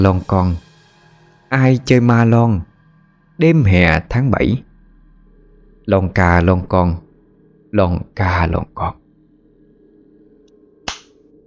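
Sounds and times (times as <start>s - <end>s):
speech: 0.0s - 0.6s, 1.5s - 2.7s, 3.4s - 4.7s, 5.9s - 7.0s, 7.7s - 9.0s
slap to the face: 10.9s - 11.2s.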